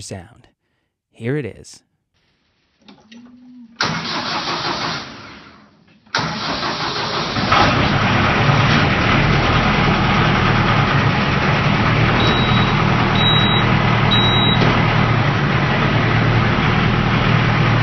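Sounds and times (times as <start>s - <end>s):
speech: 0.0s - 0.4s, 1.2s - 1.9s
grandfather's tractor engine starting and idling: 3.8s - 17.8s.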